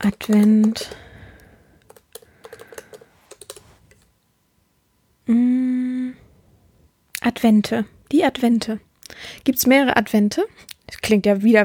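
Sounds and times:
speech: 0.0s - 1.0s, 5.3s - 5.5s, 7.4s - 11.6s
typing on a computer keyboard for a Google search: 0.0s - 4.0s.

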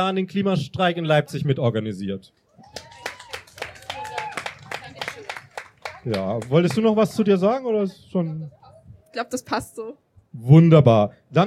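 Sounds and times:
speech: 0.0s - 2.9s, 6.0s - 8.6s, 9.2s - 11.4s
audience applause: 2.5s - 7.2s.

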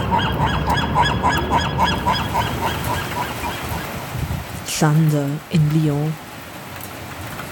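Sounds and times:
seagulls calling in Santa Barbara: 0.0s - 4.0s
speech: 0.1s - 2.0s, 4.8s - 6.2s.

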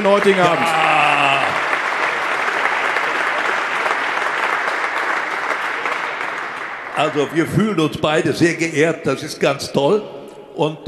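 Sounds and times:
speech: 0.0s - 0.9s, 7.0s - 10.8s
audience applause: 0.0s - 7.7s.

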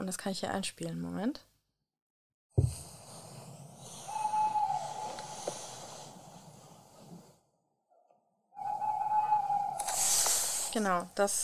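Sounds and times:
speech: 0.1s - 1.5s, 10.8s - 11.4s
male tawny owl calling: 3.8s - 6.1s, 8.5s - 10.7s.

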